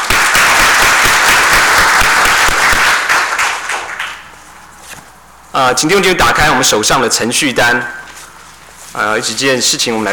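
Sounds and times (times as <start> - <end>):
audience applauding: 0.0 - 4.4
speech: 5.6 - 8.0, 9.0 - 10.1.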